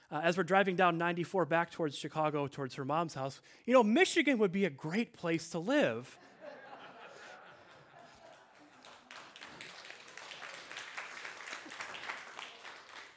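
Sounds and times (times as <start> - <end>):
speech: 0.1 - 6.3
laughter: 6.2 - 10.4
audience applause: 7.5 - 13.1.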